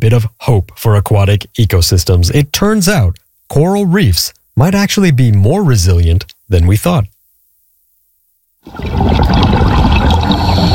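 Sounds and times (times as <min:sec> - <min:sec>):
speech: 0:00.0 - 0:07.1, 0:08.6 - 0:10.2
scuba diver breathing underwater: 0:08.8 - 0:10.7.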